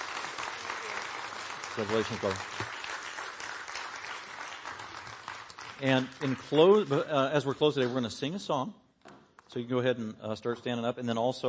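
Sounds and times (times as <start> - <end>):
church congregation applauding a member: 0.0 - 8.1
speech: 1.8 - 2.7, 5.8 - 8.8, 9.5 - 11.4.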